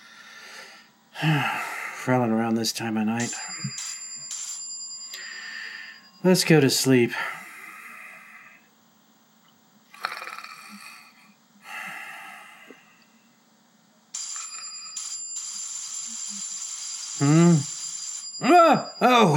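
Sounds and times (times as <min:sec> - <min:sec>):
speech: 0:01.2 - 0:04.0, 0:06.2 - 0:07.4
doorbell ringing at night: 0:03.2 - 0:06.5, 0:14.2 - 0:16.4, 0:17.0 - 0:19.3
loud snort: 0:10.0 - 0:11.1
person snoring: 0:10.0 - 0:12.8, 0:17.2 - 0:17.7.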